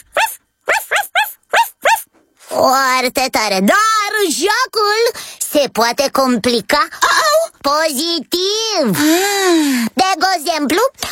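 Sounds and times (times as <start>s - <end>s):
voice imitating puppy barking: 0.0s - 2.1s
speech: 2.6s - 7.0s, 7.6s - 11.1s.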